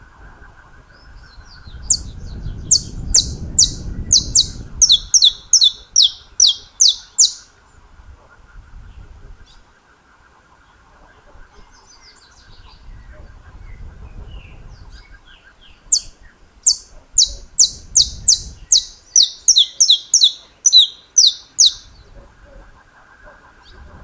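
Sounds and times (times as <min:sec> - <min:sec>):
Saffron finch song: 0:01.3 - 0:07.5, 0:14.4 - 0:22.0.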